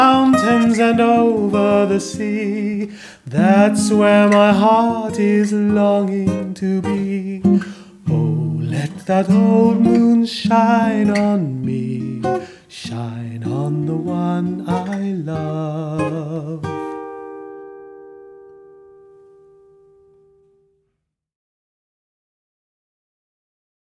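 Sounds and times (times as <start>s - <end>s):
man singing a song: 0.0s - 17.1s.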